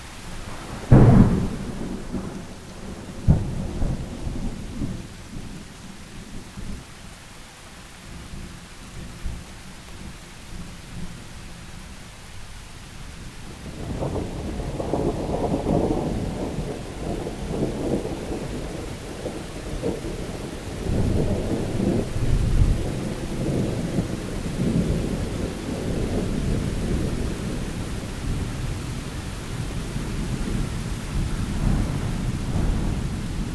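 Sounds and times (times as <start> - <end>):
thunder: 0.5 - 5.5, 13.6 - 33.5.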